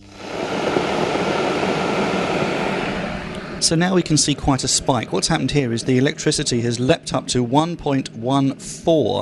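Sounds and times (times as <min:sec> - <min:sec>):
electric kettle switched on, starting to heat: 0:00.0 - 0:04.8
speech: 0:03.6 - 0:09.2.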